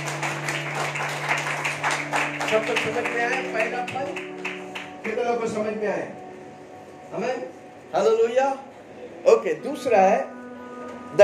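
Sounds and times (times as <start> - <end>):
audience clapping: 0.0 - 5.3
speech: 2.5 - 4.3, 5.0 - 6.2, 7.1 - 10.3.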